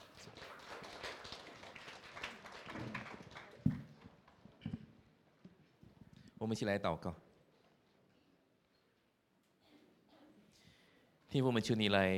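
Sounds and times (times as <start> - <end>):
audience clapping in welcome: 0.0 - 4.4
speech: 6.4 - 7.3, 11.4 - 12.1.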